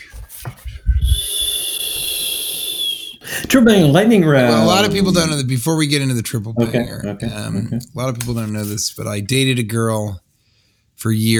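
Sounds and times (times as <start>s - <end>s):
breathy silent whistle through pursed lips: 0.9s - 3.6s
laughter: 3.4s - 5.4s, 6.6s - 8.7s
speech: 3.5s - 10.2s, 11.0s - 11.3s.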